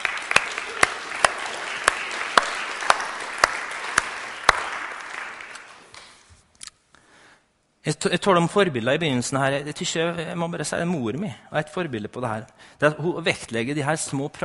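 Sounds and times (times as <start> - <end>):
audience applauding: 0.0 - 6.1
speech: 7.9 - 14.4.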